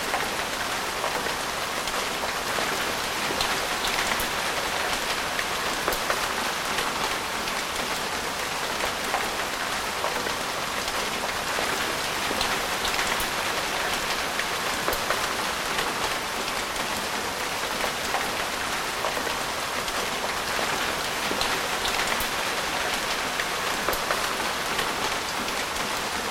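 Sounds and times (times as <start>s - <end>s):
rain: 0.0s - 26.2s.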